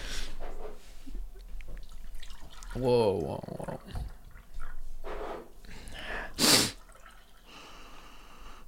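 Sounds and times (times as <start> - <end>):
brewed batch coffee being poured: 1.2 - 4.9, 6.2 - 7.8
coffee dripping: 1.2 - 4.9, 6.8 - 7.6
speech: 2.8 - 4.1.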